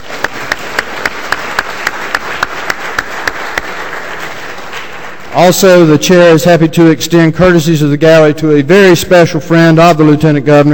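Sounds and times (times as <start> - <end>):
audience applause: 0.0 - 5.4
speech: 5.4 - 10.7.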